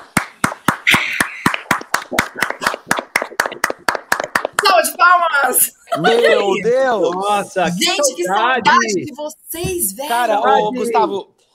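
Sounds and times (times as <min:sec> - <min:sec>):
group clapping rhythmically: 0:00.0 - 0:05.4
speech: 0:05.5 - 0:11.3.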